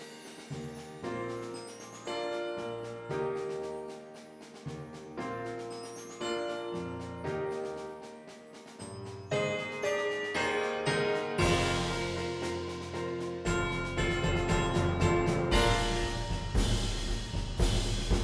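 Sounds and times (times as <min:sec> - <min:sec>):
percussion: 0:00.0 - 0:18.2
piano: 0:00.0 - 0:18.2.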